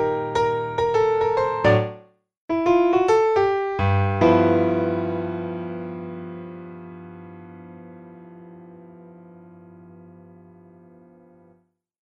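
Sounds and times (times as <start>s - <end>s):
eight bar boogie on solo piano: 0.0s - 11.5s.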